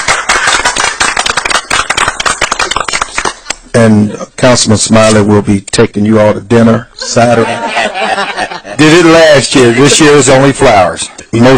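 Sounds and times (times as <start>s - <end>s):
applause: 0.0s - 3.6s
speech: 3.7s - 11.5s
laughter: 7.0s - 10.3s.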